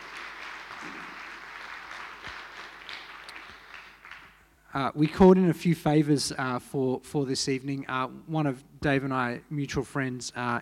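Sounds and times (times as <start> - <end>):
round of applause: 0.0 - 4.5
speech: 4.7 - 10.6.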